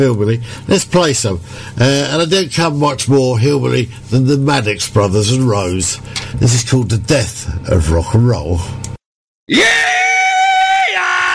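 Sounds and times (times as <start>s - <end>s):
speech: 0.0s - 8.8s, 9.5s - 10.0s
man doing a rebel yell: 9.5s - 11.3s.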